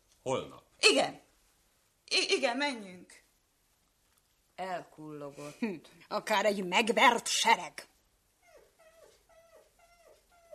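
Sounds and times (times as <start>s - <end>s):
speech: 0.2s - 1.2s, 2.1s - 3.2s, 4.6s - 7.9s
wounded dog whimpering: 8.4s - 10.5s.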